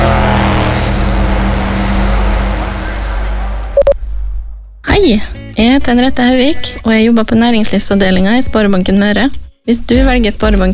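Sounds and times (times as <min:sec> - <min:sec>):
Formula race car engines before a race start on a hot sunny day: 0:00.0 - 0:03.8
brief beeps: 0:03.8 - 0:04.0
speech: 0:05.0 - 0:10.7.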